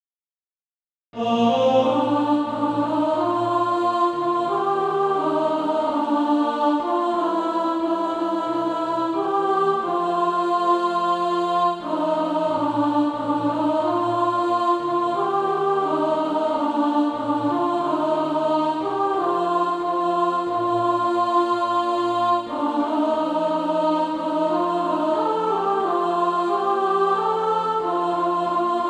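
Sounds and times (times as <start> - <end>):
alto practice music: 1.2 - 28.8.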